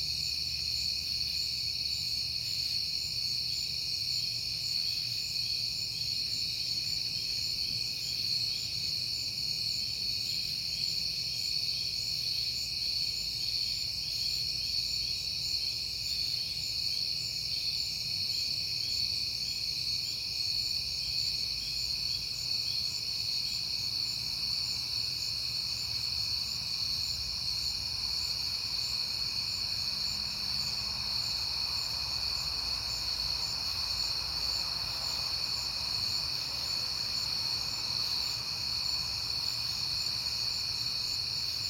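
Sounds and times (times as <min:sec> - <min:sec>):
crickets chirping in chorus: 0:00.0 - 0:41.6.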